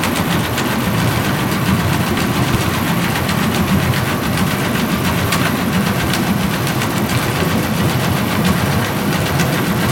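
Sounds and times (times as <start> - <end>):
Orcasound hydrophone underwater sound: 0.2 - 9.7.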